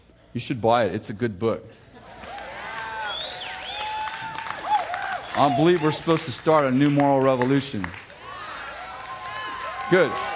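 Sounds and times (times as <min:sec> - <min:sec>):
speech: 0:00.4 - 0:01.8, 0:05.4 - 0:08.0, 0:09.9 - 0:10.3
audience clapping: 0:02.2 - 0:10.3.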